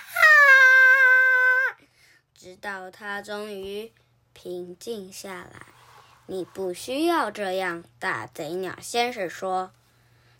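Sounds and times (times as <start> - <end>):
child crying: 0.0 - 1.8
speech: 2.6 - 9.8.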